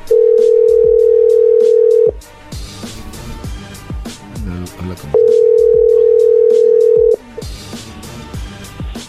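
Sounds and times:
telephone ringback tone: 0.0s - 2.2s, 5.2s - 7.3s.

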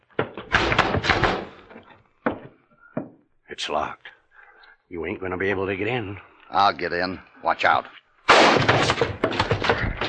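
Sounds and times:
door being forced open: 0.1s - 1.8s, 8.3s - 10.0s
speech: 3.6s - 4.1s, 4.9s - 9.1s.

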